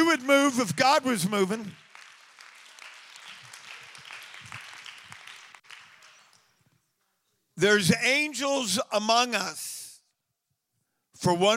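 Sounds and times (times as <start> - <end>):
audience clapping: 0.0 - 6.8
speech: 0.2 - 1.9, 7.6 - 9.8, 11.2 - 11.5.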